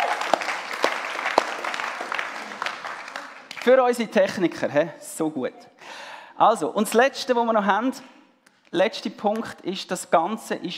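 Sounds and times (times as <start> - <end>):
audience applause: 0.0 - 3.8
speech: 3.6 - 5.7, 6.4 - 10.7.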